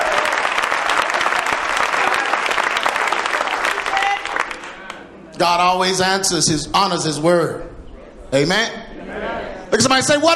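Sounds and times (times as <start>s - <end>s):
audience clapping: 0.0s - 5.0s
speech: 5.4s - 7.7s, 8.3s - 8.8s, 9.7s - 10.3s.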